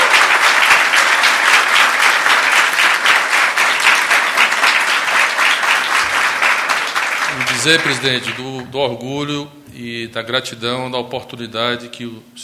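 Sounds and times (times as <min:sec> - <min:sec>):
loud audience applause: 0:00.0 - 0:08.5
speech: 0:07.6 - 0:12.4.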